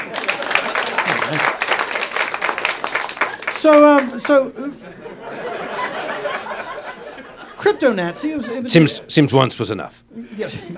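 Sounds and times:
audience applause: 0.0s - 7.7s
laughter: 0.0s - 10.7s
speech: 1.3s - 1.6s, 3.6s - 5.6s, 7.6s - 10.7s.

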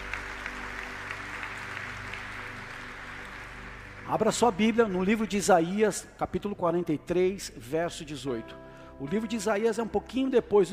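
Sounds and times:
audience applauding: 0.0s - 5.6s
speech: 4.1s - 10.7s.

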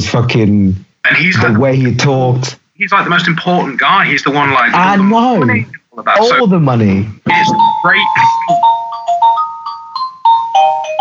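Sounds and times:
speech: 0.0s - 9.4s
doorbell ringing: 7.3s - 10.9s.

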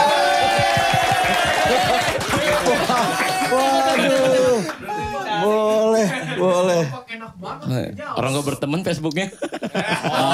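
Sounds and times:
crowd applause: 0.0s - 5.3s
laughter: 0.2s - 6.8s, 9.3s - 10.3s
speech: 6.1s - 10.3s.

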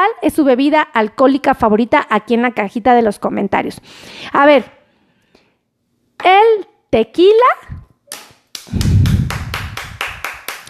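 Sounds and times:
speech: 0.1s - 4.8s, 6.2s - 8.9s
hand clapping: 8.1s - 10.6s.

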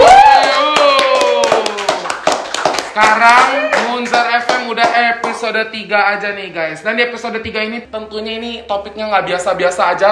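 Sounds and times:
applause, hands clapping: 0.0s - 5.5s
speech: 3.0s - 3.6s, 4.7s - 10.1s.

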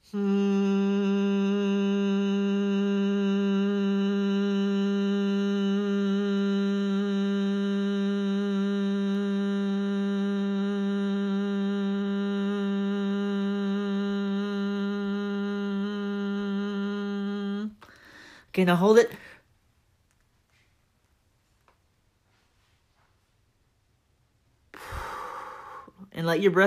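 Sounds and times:
humming exhale in bee breath yoga: 0.0s - 19.1s, 24.8s - 26.1s
speech: 0.1s - 0.3s, 18.6s - 19.3s, 26.4s - 26.6s.

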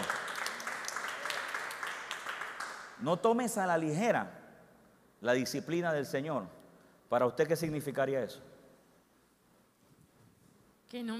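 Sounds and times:
audience applause: 0.0s - 2.9s
speech: 3.0s - 4.4s, 5.2s - 8.5s, 10.9s - 11.1s.

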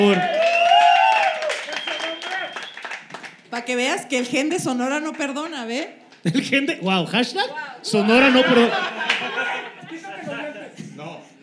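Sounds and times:
speech: 0.0s - 0.3s, 3.7s - 9.1s
audience applause: 0.0s - 3.4s
laughter: 7.9s - 10.8s.

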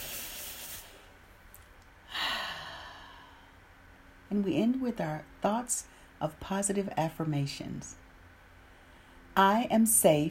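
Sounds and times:
deep breath in during guided relaxation: 2.1s - 3.6s
speech: 4.3s - 8.0s, 9.4s - 10.2s.

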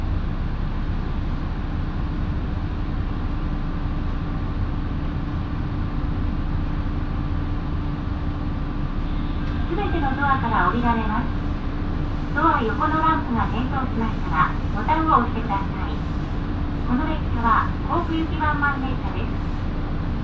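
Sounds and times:
Minobu Line local train running from Fuji to Shibakawa: 0.0s - 20.2s
faint constant tone: 0.1s - 20.2s
voices: 9.6s - 11.5s, 12.3s - 16.2s, 16.8s - 19.4s.

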